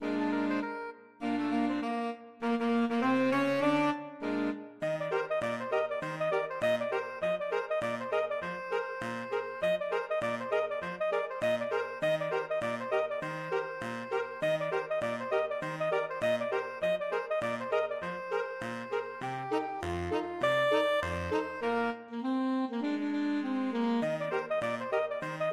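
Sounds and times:
saxophone quartet playing: 0:00.0 - 0:25.5.

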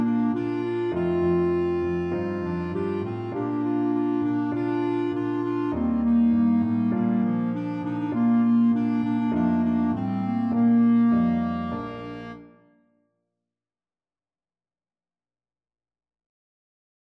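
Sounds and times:
swing music by clarinet trio: 0:00.0 - 0:12.5.

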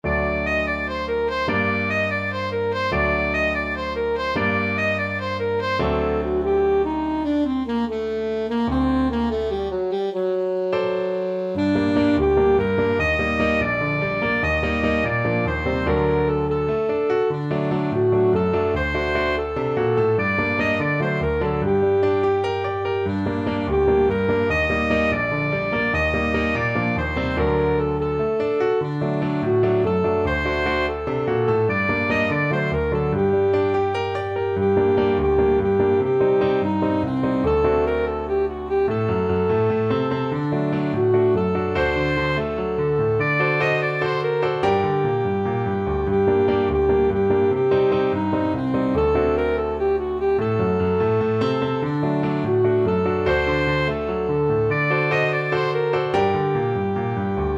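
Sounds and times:
alto saxophone: 0:00.0 - 0:57.5.

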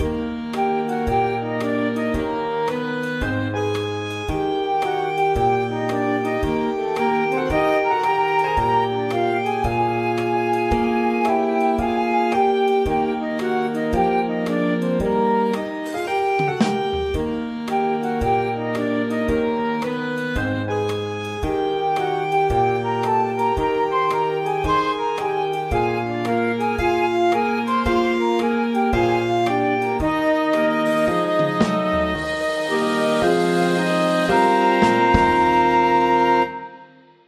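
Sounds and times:
mixed ensemble playing: 0:00.0 - 0:37.0.

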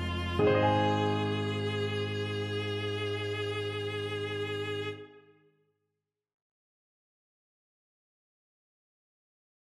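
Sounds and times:
viola: 0:00.0 - 0:05.2.

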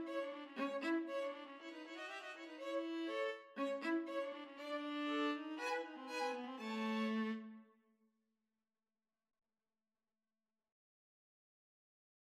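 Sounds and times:
two violins and viola playing a freilechs: 0:00.0 - 0:07.6.

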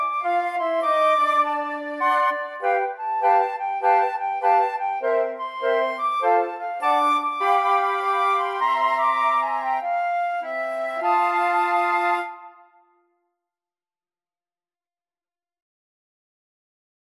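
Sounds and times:
flute choir: 0:00.0 - 0:13.0.

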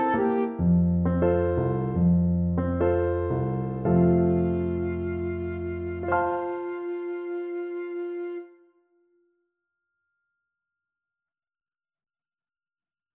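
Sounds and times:
flute: 0:00.0 - 0:00.9, 0:03.9 - 0:09.0
tango music: 0:00.0 - 0:08.2.

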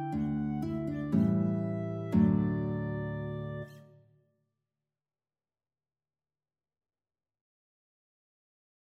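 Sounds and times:
guitar in a guitar and clarinet duet: 0:00.0 - 0:03.9
clarinet in a guitar and clarinet duet: 0:00.0 - 0:04.0.

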